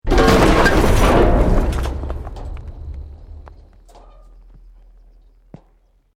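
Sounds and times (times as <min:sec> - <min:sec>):
small building scaffolding collapsing: 0:00.0 - 0:05.4.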